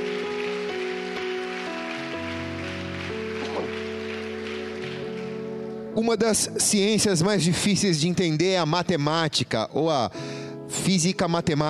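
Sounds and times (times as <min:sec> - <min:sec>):
audience applauding loudly: 0:00.0 - 0:06.0
speech: 0:06.0 - 0:11.6.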